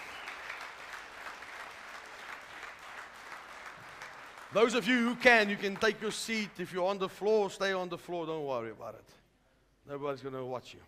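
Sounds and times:
audience in a church applauding singers: 0.0 - 6.5
speech: 4.5 - 9.2, 9.9 - 10.8.

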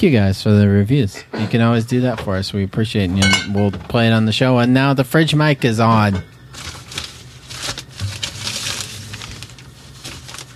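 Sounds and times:
speech: 0.0 - 6.8
paper being handled and crinkled: 6.5 - 10.5.

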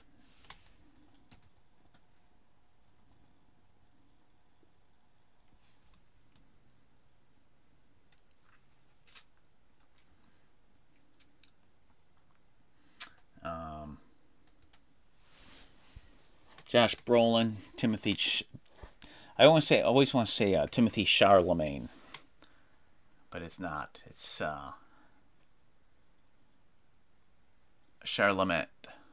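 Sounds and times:
typing on a computer keyboard into a movie-database search: 0.4 - 2.4, 3.0 - 3.3
speech: 16.7 - 18.6, 19.4 - 22.0, 23.3 - 24.8, 28.0 - 29.0.

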